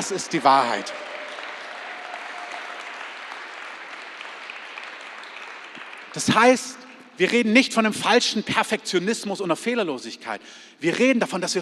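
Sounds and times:
speech: 0:00.0 - 0:01.2, 0:06.1 - 0:11.5
audience applause: 0:00.0 - 0:06.9.

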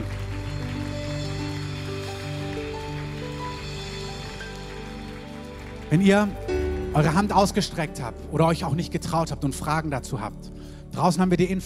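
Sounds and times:
audience applause: 0:00.0 - 0:07.7
speech: 0:05.9 - 0:11.6.

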